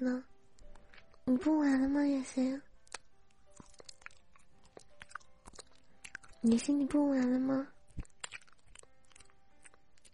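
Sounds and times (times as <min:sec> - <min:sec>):
speech: 0:00.0 - 0:00.3, 0:01.3 - 0:02.7, 0:06.4 - 0:08.1
person biting into and chewing crisp fruit: 0:02.8 - 0:10.1.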